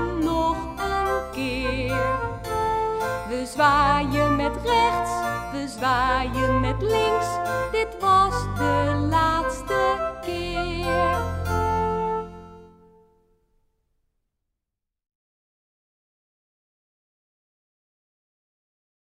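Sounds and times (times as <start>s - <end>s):
song: 0.0s - 13.2s.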